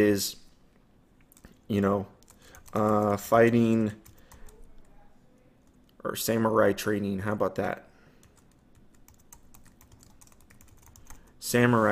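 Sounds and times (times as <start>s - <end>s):
speech: 0.0s - 0.4s, 1.7s - 4.0s, 6.0s - 7.9s, 11.4s - 11.9s
computer keyboard typing: 2.2s - 4.9s, 8.2s - 11.3s.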